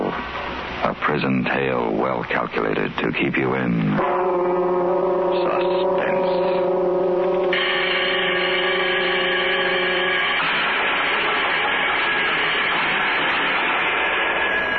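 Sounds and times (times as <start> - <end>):
speech: 0.8 - 5.8
loud prison bell ringing: 4.0 - 14.7.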